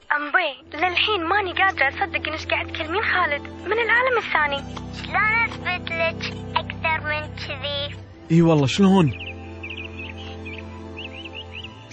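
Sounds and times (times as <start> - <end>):
speech: 0.5 - 9.3
colourful bird singing in high chirping twitters and trills: 8.6 - 11.9.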